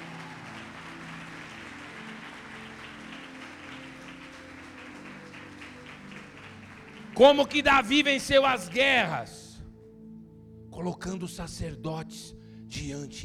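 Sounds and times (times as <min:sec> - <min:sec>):
audience applause: 0:00.0 - 0:08.7
low sustained musical tones: 0:00.0 - 0:12.9
speech: 0:07.2 - 0:09.4, 0:10.8 - 0:13.2.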